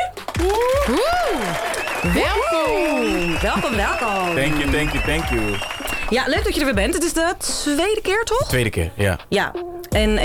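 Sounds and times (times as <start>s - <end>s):
audience applause: 0.0s - 6.6s
speech: 0.4s - 10.2s.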